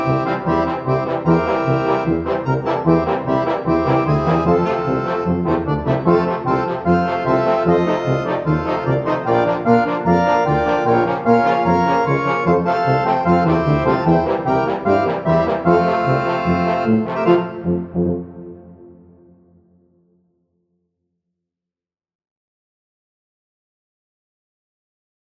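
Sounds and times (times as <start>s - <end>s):
German Bavarian brass and accordion song: 0.0s - 19.4s.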